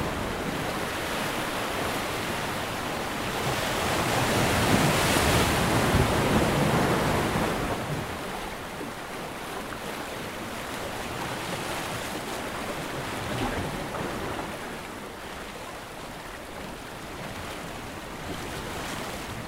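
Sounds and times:
ocean waves washing against rocks: 0.0s - 19.4s.

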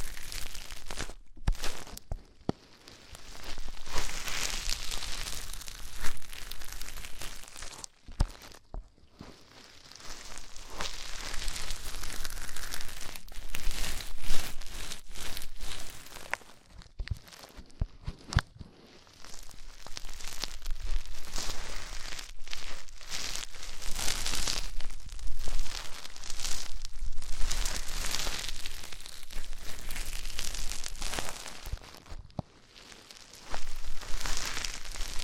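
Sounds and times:
crackly rustling and scratching of deep ear cleaning: 0.0s - 35.2s.

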